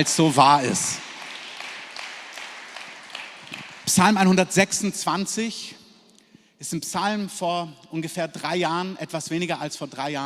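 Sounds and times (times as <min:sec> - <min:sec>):
speech: 0:00.0 - 0:01.1, 0:03.9 - 0:05.8, 0:06.6 - 0:10.2
audience applause: 0:00.0 - 0:04.2.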